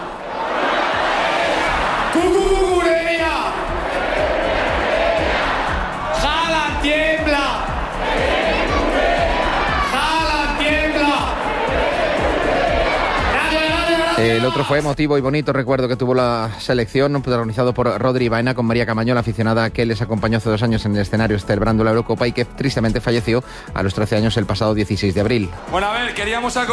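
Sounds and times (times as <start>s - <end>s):
crowd of fans singing a chant at a Euro Championship celebration: 0.0s - 2.2s, 3.5s - 6.6s, 7.6s - 13.4s
crowd roar: 0.0s - 14.7s
speech: 14.2s - 26.7s.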